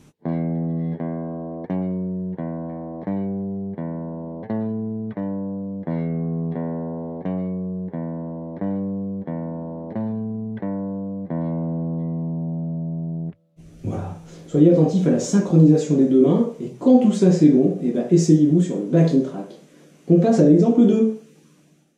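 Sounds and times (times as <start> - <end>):
electric guitar riff demonstration: 0.0 - 14.6
speech: 14.5 - 19.5, 20.1 - 21.2.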